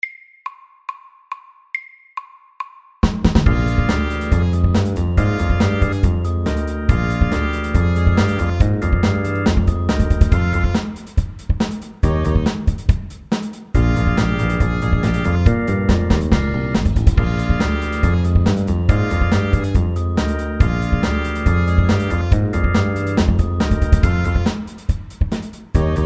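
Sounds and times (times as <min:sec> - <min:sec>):
fast eight-bar blues at 140 BPM: 0:03.0 - 0:13.2, 0:13.8 - 0:26.0.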